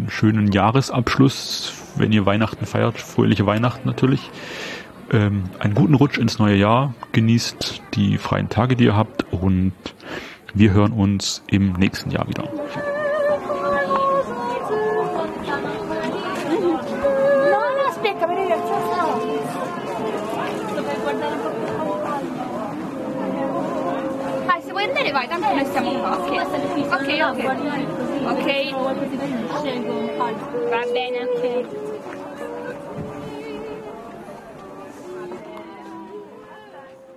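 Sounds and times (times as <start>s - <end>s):
crowd chatter at a Christmas market: 0.0s - 37.1s
speech: 0.1s - 13.0s, 25.2s - 31.9s.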